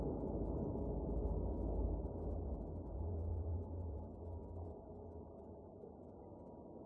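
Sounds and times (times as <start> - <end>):
dark eerie airy alien science fiction soundscape: 0.0 - 6.3.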